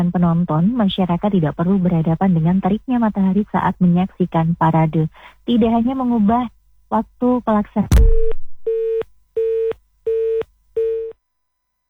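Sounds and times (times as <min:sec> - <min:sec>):
speech: 0:00.0 - 0:08.4
telephone busy tone after dropped call: 0:08.7 - 0:11.1.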